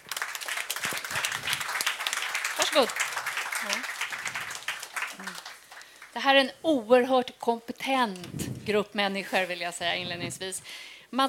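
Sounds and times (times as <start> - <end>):
audience applause: 0.0 - 6.2
speech: 2.8 - 4.0, 6.2 - 11.2.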